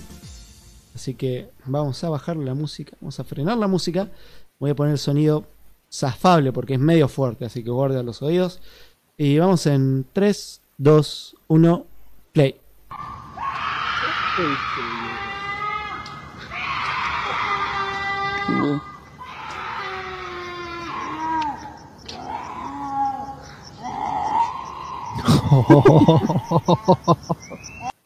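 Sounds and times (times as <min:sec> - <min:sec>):
speech: 0:01.0 - 0:13.2, 0:14.4 - 0:15.0, 0:25.5 - 0:27.8
ghostly woman's wailing screams: 0:12.9 - 0:26.7
laughter: 0:25.2 - 0:27.9.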